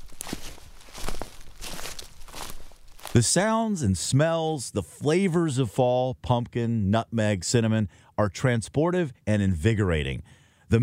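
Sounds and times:
footsteps crunching on sidewalk: 0.0s - 3.3s
speech: 3.1s - 10.8s.

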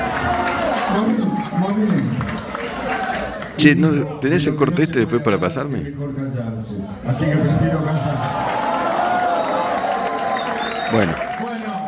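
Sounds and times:
audience applause: 0.0s - 3.6s, 8.1s - 11.8s
speech: 0.9s - 2.4s, 3.6s - 8.6s, 10.9s - 11.3s.

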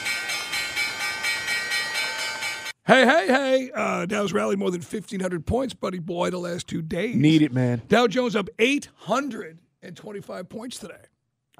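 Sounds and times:
stock market closing bell: 0.0s - 2.8s
speech: 2.9s - 11.5s.

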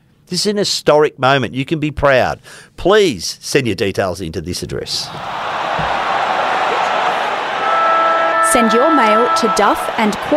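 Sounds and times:
speech: 0.3s - 5.9s, 8.5s - 10.3s
low thump: 5.1s - 6.1s
applause: 5.4s - 10.3s.

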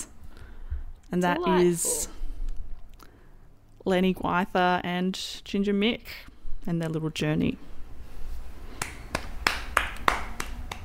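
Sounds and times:
speech: 1.1s - 2.1s, 3.8s - 7.7s
hand clapping: 8.7s - 10.8s.

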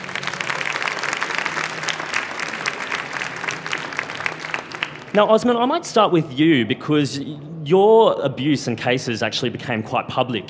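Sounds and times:
audience applause welcoming a speaker: 0.0s - 5.5s
speech: 5.2s - 10.4s.

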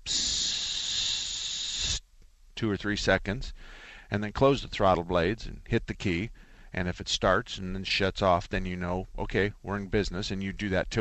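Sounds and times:
voice imitating carburetor cleaner spray hiss: 0.0s - 2.0s
speech: 2.6s - 10.9s.

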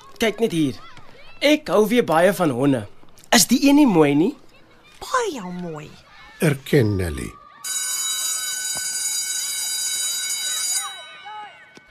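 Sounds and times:
speech: 0.2s - 4.4s, 5.0s - 7.4s
school bell ringing: 7.6s - 11.8s.

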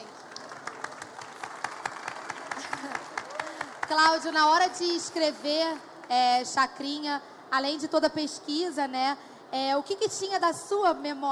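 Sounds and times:
audience applause: 0.0s - 4.3s
speech: 3.9s - 11.3s.

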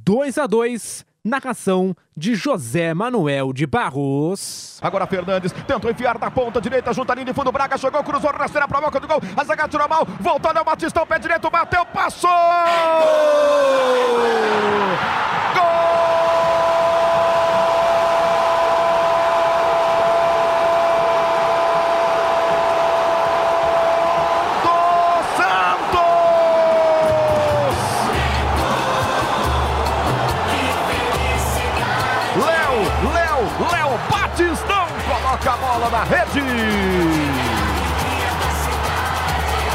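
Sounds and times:
man talking excitedly: 0.0s - 16.6s, 24.6s - 28.1s, 32.3s - 37.8s
speech: 0.1s - 15.7s, 35.4s - 37.5s
stadium crowd roaring after a goal: 11.2s - 39.7s
man holding one long loud shout: 11.8s - 17.8s, 24.6s - 28.1s, 32.4s - 37.7s.

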